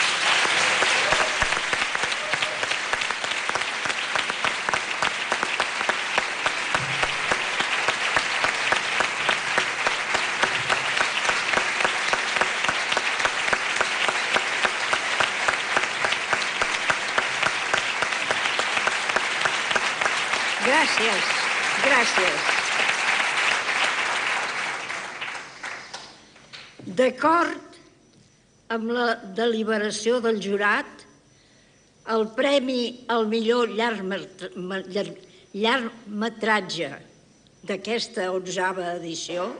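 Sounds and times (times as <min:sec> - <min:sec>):
audience applause: 0:00.0 - 0:26.7
speech: 0:28.8 - 0:31.0, 0:32.2 - 0:39.5.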